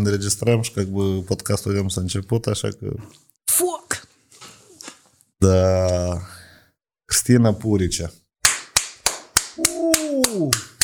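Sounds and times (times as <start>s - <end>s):
speech: 0.0s - 3.4s, 5.4s - 6.4s, 7.1s - 8.2s, 10.4s - 10.6s
applause hand clapping: 8.4s - 10.8s.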